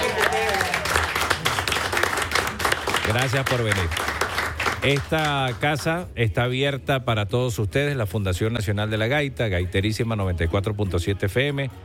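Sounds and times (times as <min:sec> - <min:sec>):
audience clapping for gaita folk performers in Maracaibo: 0:00.0 - 0:06.0
speech: 0:03.1 - 0:04.2, 0:04.8 - 0:11.8.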